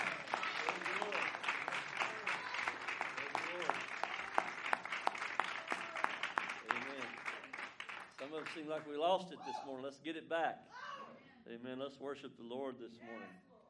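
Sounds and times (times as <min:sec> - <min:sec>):
audience hand clapping: 0:00.0 - 0:09.1
speech: 0:08.4 - 0:10.8, 0:11.5 - 0:13.5.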